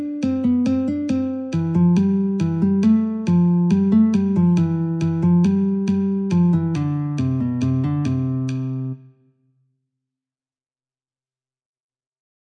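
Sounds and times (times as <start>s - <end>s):
metronome at 69: 0.0s - 9.0s
guitar in C: 0.0s - 9.2s.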